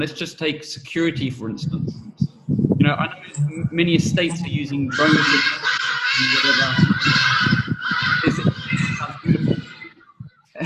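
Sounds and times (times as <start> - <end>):
laughter: 0.0 - 1.8, 2.8 - 10.6
speech: 0.0 - 2.1, 2.8 - 7.4
hadeda ibises calling loudly: 4.5 - 10.5.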